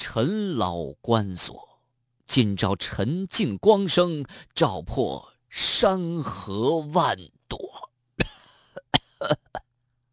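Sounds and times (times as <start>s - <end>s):
speech: 0.0s - 1.7s, 2.3s - 7.6s, 9.2s - 9.6s
repeated coughing: 8.2s - 9.6s.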